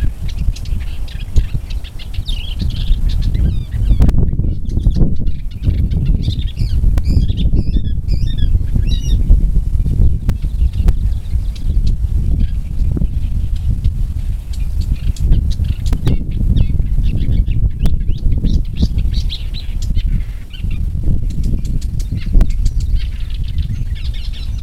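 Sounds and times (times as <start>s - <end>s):
thick-billed warbler Iduna aedon calling: 0.0s - 24.6s.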